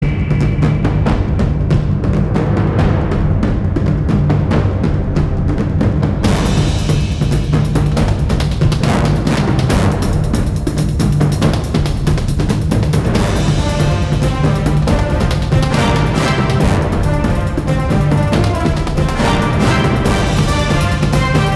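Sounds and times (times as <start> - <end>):
marching tune: 0.0 - 21.5.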